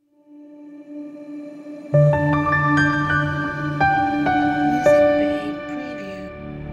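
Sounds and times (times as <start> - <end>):
elegant piano logo jingle: 2.0 - 6.6.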